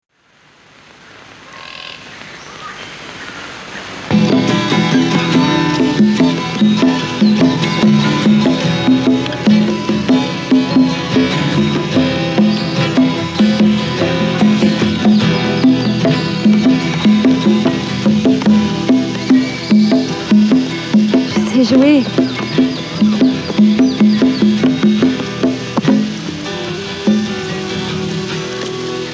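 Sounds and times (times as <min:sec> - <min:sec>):
instrumental music: 0:04.1 - 0:29.1.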